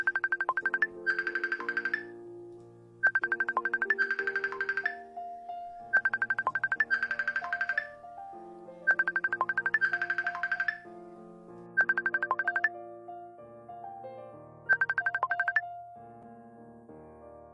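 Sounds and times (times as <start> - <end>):
looping melodic tone: 0.0 - 2.1, 3.0 - 5.1, 5.8 - 8.0, 8.9 - 10.9, 11.8 - 12.7, 14.7 - 15.6
telephone electronic ringtone while redialing a dropped call: 0.0 - 2.2, 3.0 - 5.1, 5.8 - 8.0, 8.9 - 10.9, 11.8 - 12.7, 14.7 - 15.6.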